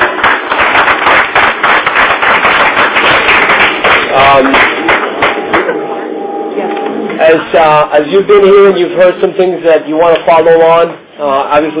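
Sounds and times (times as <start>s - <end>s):
audience applause: 0.0s - 5.8s
speech: 4.3s - 4.6s, 7.3s - 11.7s.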